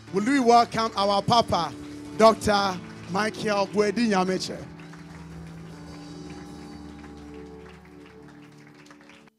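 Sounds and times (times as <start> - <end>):
speech: 0.1 - 4.8
crowd applause and hand clapping: 0.2 - 9.3
low droning musical tone: 2.1 - 9.2.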